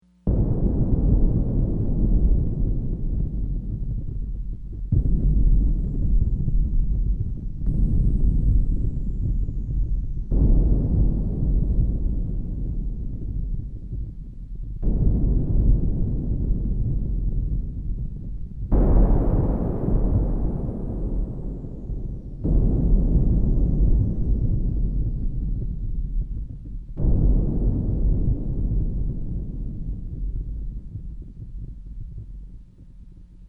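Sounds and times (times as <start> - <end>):
thunder: 0.3 - 14.2, 14.8 - 32.3.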